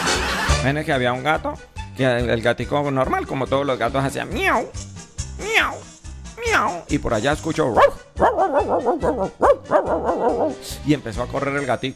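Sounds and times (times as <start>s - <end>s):
speech: 0.6s - 11.9s
person imitating dog barking: 5.4s - 5.8s, 7.8s - 10.7s.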